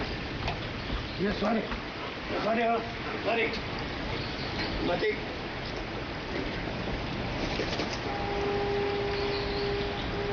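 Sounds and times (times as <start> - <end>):
rain falling on a quiet street: 0.0 - 10.3
speech: 1.2 - 5.3
low humming tone: 7.9 - 10.3.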